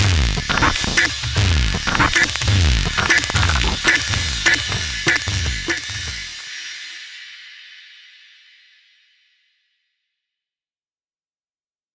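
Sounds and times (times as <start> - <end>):
C64 chiptune breakbeat: 0.0 - 6.4.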